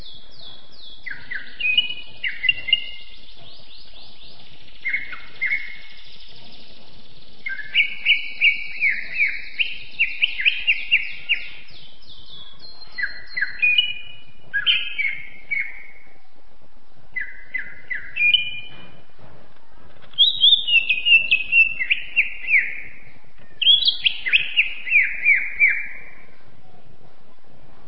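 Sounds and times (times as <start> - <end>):
champion Greater green leafbird singing: 0.0 - 16.2, 17.1 - 19.0, 20.1 - 26.4.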